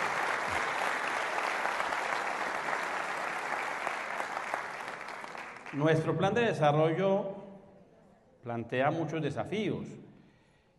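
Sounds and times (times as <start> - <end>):
sustained applause from a sizable audience: 0.0 - 6.0
speech: 5.7 - 7.4, 8.4 - 10.0.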